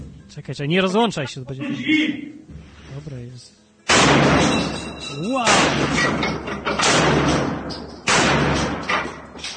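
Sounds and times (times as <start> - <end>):
speech: 0.5 - 7.9
gunshots: 3.9 - 4.8, 5.4 - 9.4.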